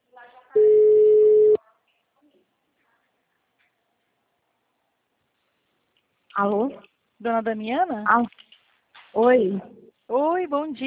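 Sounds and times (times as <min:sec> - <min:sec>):
telephone ringing tone: 0:00.6 - 0:01.6
speech: 0:06.4 - 0:08.5, 0:09.2 - 0:10.8.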